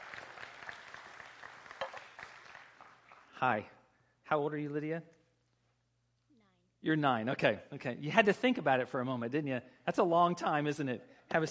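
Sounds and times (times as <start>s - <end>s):
audience applause welcoming a volunteer at a morning gathering: 0.0s - 3.4s
speech: 3.4s - 5.2s, 6.8s - 11.4s.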